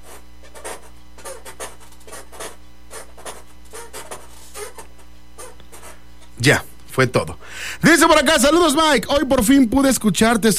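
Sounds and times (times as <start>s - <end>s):
chair creaking: 0.0s - 6.4s
speech: 6.4s - 10.5s.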